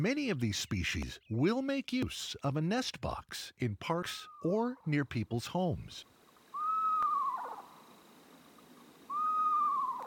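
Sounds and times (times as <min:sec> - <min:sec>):
speech: 0:00.0 - 0:06.2
screech owl whinnying call: 0:06.5 - 0:07.8, 0:09.1 - 0:10.0.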